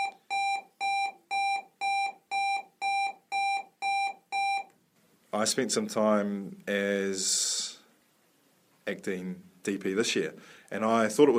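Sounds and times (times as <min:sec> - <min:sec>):
electronic school bell beeping: 0:00.0 - 0:04.6
speech: 0:05.4 - 0:07.7, 0:08.9 - 0:11.3.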